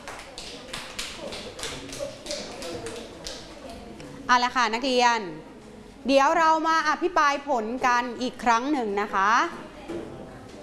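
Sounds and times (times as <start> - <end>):
students clapping for group four: 0.0 - 3.6
speech: 4.3 - 10.1.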